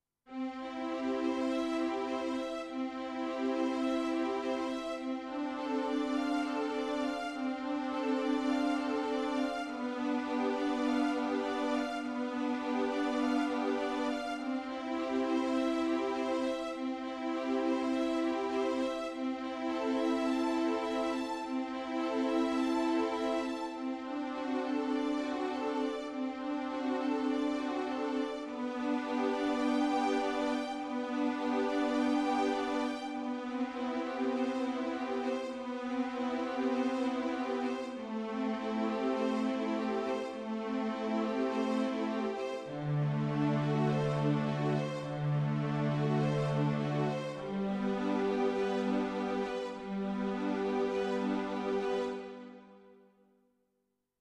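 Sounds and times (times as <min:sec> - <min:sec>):
strings: 0:00.3 - 0:53.0.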